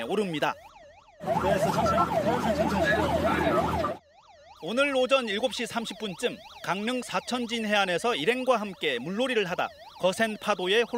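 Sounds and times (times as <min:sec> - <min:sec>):
speech: 0:00.0 - 0:04.0, 0:04.6 - 0:10.9
rescue siren wailing: 0:00.0 - 0:10.9.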